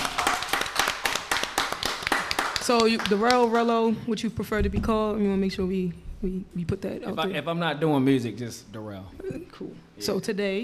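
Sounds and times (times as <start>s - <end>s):
applause from a few hands greeting a studio guest: 0.0s - 3.9s
speech: 2.7s - 10.6s.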